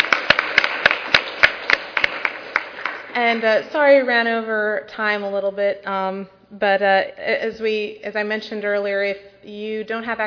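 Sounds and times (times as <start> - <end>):
audience applause of sharp hand claps: 0.0 - 3.5
speech: 3.2 - 10.2.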